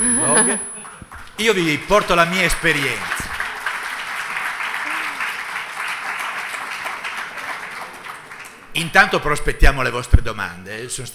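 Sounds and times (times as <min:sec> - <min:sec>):
speech: 0:00.4 - 0:00.8, 0:01.4 - 0:03.2, 0:08.8 - 0:11.1
audience clapping: 0:00.4 - 0:08.7.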